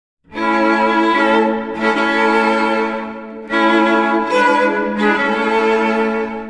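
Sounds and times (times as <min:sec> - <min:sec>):
wedding music: 0:00.3 - 0:06.4.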